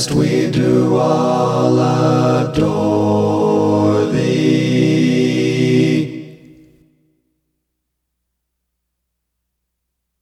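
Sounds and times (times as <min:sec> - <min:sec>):
English music: 0:00.0 - 0:07.6.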